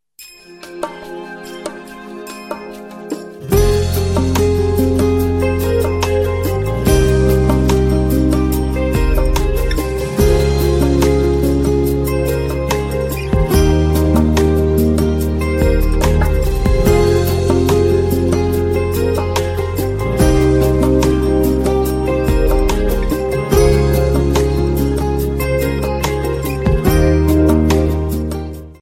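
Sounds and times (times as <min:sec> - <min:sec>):
morning tone ringtone: 0:00.2 - 0:28.8.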